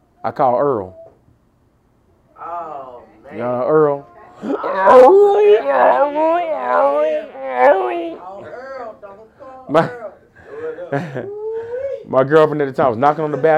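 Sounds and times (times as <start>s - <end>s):
speech: 0.2s - 1.0s, 3.3s - 7.9s, 9.7s - 10.0s, 10.9s - 11.4s, 12.1s - 13.5s
man imitating vomiting and retching: 4.4s - 8.2s.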